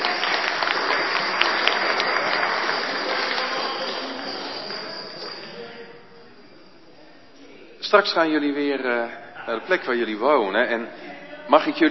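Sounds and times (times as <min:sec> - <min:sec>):
audience applause: 0:00.0 - 0:05.4
speech: 0:07.9 - 0:11.8.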